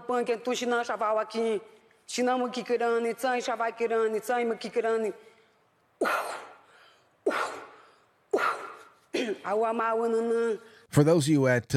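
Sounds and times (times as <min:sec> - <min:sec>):
speech: 0:00.1 - 0:05.3, 0:06.0 - 0:06.5, 0:09.2 - 0:11.7
woman coughing: 0:06.0 - 0:06.6, 0:07.2 - 0:09.8.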